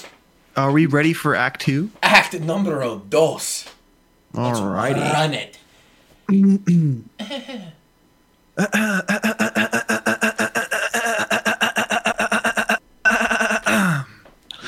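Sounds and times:
speech: 0.6s - 5.6s, 6.3s - 7.8s, 8.6s - 9.8s
voice imitating a car engine cold starting: 8.6s - 14.6s.

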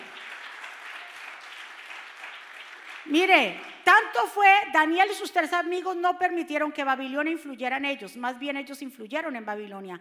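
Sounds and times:
loud audience applause: 0.0s - 3.9s
speech: 3.0s - 10.0s.

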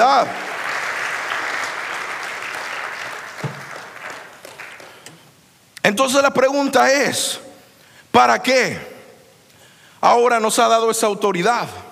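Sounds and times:
audience applause: 0.0s - 5.1s
speech: 0.2s - 0.4s, 5.9s - 7.4s, 8.2s - 8.9s, 10.0s - 11.9s.

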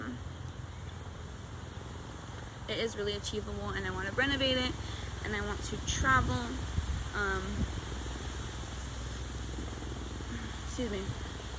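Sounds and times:
speech: 2.7s - 7.8s, 10.8s - 11.3s
helicopter flying overhead: 2.7s - 11.5s.

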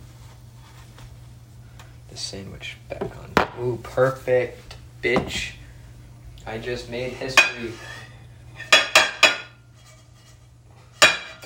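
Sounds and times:
low steady hum: 0.0s - 11.4s
speech: 2.2s - 5.6s, 6.4s - 8.0s
pan banging against a plate: 8.6s - 9.6s, 11.0s - 11.4s.

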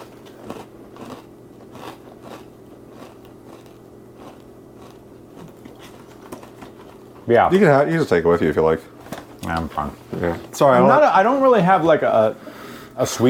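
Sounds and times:
person crunching a Fruit Loops-flavoured snack: 0.0s - 6.6s
speech: 7.3s - 8.9s, 9.5s - 13.2s.

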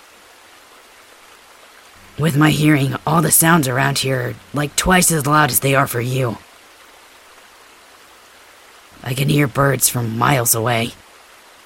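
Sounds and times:
river flowing: 0.0s - 11.6s
speech: 2.2s - 6.5s, 9.1s - 11.0s.

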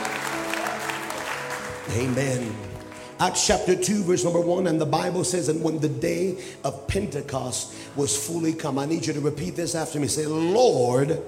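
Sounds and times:
audience clapping hands: 0.0s - 3.7s
speech: 1.9s - 11.2s.

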